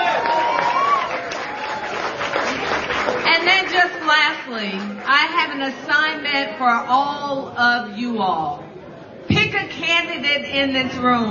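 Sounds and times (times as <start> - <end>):
audience clapping hands: 0.0 - 5.1
speech: 4.5 - 8.6, 9.8 - 11.2.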